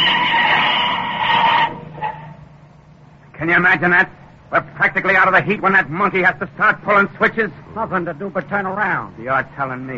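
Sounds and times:
car brakes screeching: 0:00.0 - 0:02.7
speech: 0:03.4 - 0:09.9.

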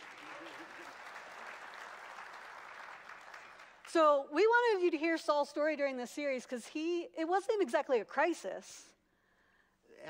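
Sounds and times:
crowd applause: 0:00.0 - 0:03.8
speech: 0:03.9 - 0:09.0.

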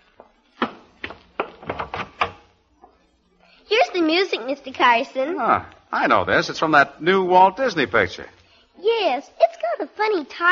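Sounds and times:
door opening: 0:00.2 - 0:03.0
speech: 0:04.0 - 0:10.5.

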